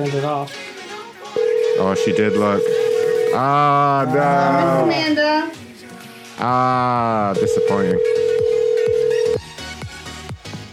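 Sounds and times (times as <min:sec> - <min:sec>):
speech: 0:00.0 - 0:00.7, 0:01.8 - 0:05.6, 0:06.4 - 0:08.2
phone ringtone for an incoming call: 0:01.3 - 0:04.3, 0:07.3 - 0:09.4.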